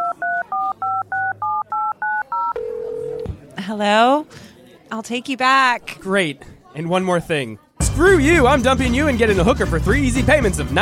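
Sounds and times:
telephone number being dialed: 0.0s - 3.3s
speech: 3.7s - 10.8s.

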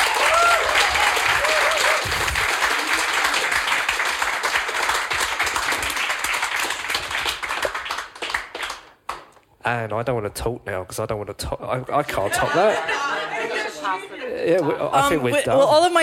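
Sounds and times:
round of applause: 0.0s - 9.3s
speech: 9.7s - 16.0s
laughter: 12.1s - 14.8s.

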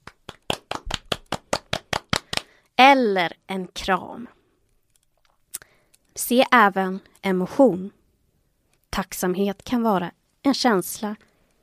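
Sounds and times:
hands clapping: 0.0s - 2.6s
speech: 2.8s - 4.4s, 6.2s - 8.0s, 8.9s - 11.3s.

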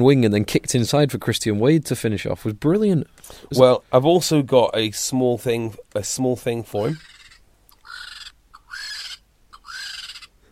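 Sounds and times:
speech: 0.0s - 7.1s
vulture call: 6.9s - 10.3s.

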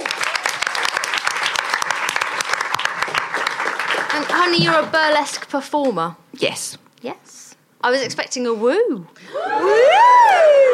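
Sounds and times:
audience applause: 0.0s - 5.1s
speech: 4.2s - 10.7s.

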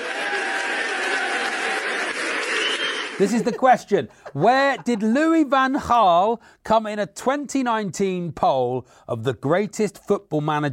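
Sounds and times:
audience applause: 0.0s - 3.4s
laughter: 0.7s - 5.4s
speech: 3.2s - 10.7s.

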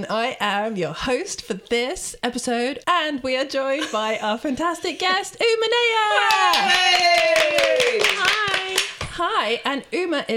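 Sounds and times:
speech: 0.0s - 8.4s, 9.2s - 10.3s
hand clapping by one person: 6.2s - 9.2s.

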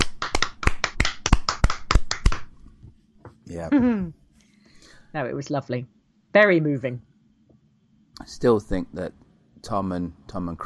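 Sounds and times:
hand clapping: 0.0s - 2.6s
speech: 3.5s - 4.2s, 5.1s - 7.1s, 8.3s - 10.6s.

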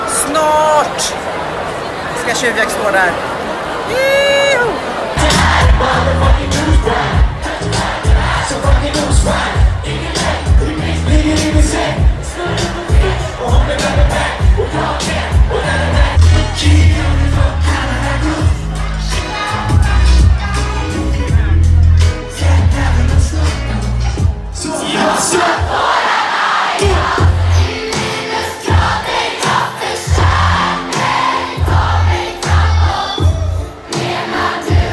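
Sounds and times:
concert crowd cheering at Gröna Lund's main stage in Stockholm: 0.0s - 34.9s
speech: 0.3s - 1.4s, 2.3s - 4.9s
driving music with heavy thumping bass: 5.2s - 24.5s, 26.8s - 27.7s, 30.1s - 33.6s.

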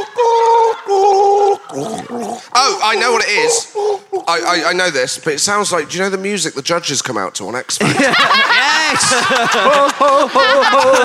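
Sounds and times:
laughter: 0.0s - 6.8s
person gargling: 1.0s - 2.6s
speech: 2.9s - 11.0s.

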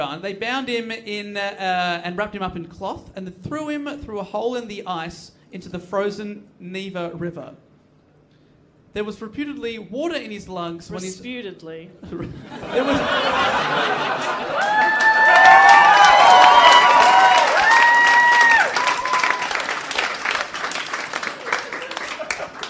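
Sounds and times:
speech: 0.0s - 7.7s, 9.0s - 16.6s
laughter: 12.1s - 15.0s, 21.4s - 22.6s
standing ovation applause: 13.7s - 22.6s.

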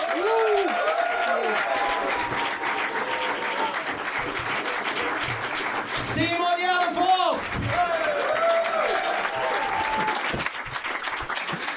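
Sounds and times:
whoops and cheers: 0.0s - 3.9s, 7.7s - 10.4s
crowd applauding: 0.0s - 11.7s.

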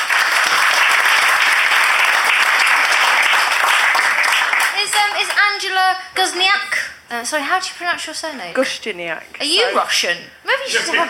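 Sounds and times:
studio audience applause for a panelist on a panel show: 0.0s - 5.6s
speech: 5.2s - 11.0s.

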